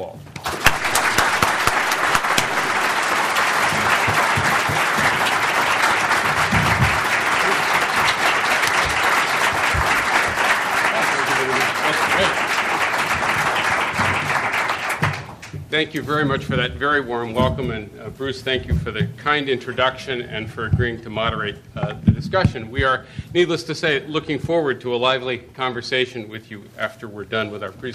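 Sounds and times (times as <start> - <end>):
speech: 0.0 - 0.3, 15.8 - 27.9
large audience applause at a Texas book event: 0.4 - 15.6.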